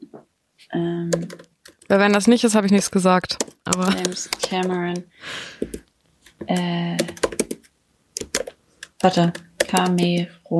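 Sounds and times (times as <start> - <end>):
speech: 0.7 - 5.8, 6.5 - 7.2, 9.0 - 10.5
typing on a computer keyboard during a web search: 1.1 - 2.5, 3.2 - 5.0, 6.4 - 10.5.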